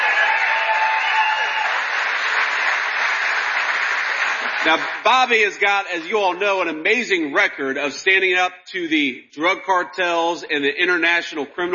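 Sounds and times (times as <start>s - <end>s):
round of applause: 0.0s - 5.5s
speech: 4.6s - 11.7s.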